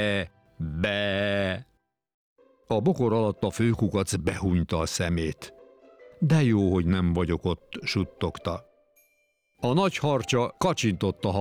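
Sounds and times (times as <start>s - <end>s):
person imitating sheep bleating: 0.0s - 1.6s
speech: 0.0s - 1.7s, 2.7s - 5.6s, 6.2s - 8.7s, 9.6s - 11.4s.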